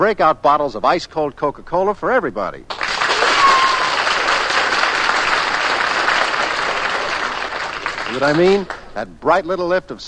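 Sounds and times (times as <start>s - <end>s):
speech: 0.0s - 2.8s, 8.1s - 10.0s
audience applause: 2.7s - 8.8s.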